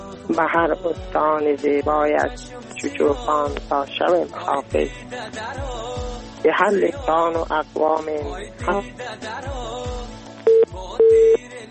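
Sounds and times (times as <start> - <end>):
speech: 0.3 - 9.9
busy tone on the line after a dropped phone call: 10.5 - 11.4.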